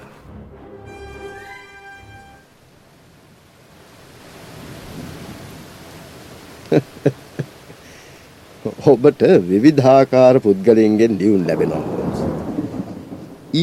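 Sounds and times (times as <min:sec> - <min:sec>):
heavy rain storm sound effect: 0:00.0 - 0:13.6
wind: 0:02.4 - 0:13.6
thunder rumbling: 0:04.5 - 0:06.2, 0:10.4 - 0:13.6
speech: 0:06.7 - 0:07.2, 0:08.8 - 0:12.0
laughter: 0:06.7 - 0:07.6.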